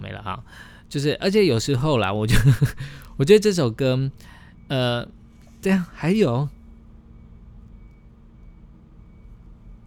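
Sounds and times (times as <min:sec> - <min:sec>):
speech: 0:00.2 - 0:06.6
truck reversing beeps: 0:04.2 - 0:09.8.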